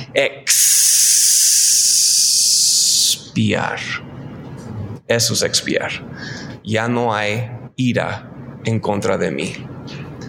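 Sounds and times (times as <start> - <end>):
speech: 0.1 - 1.0, 3.1 - 4.3, 5.1 - 9.7
air hissing out of a pierced balloon: 0.5 - 3.2.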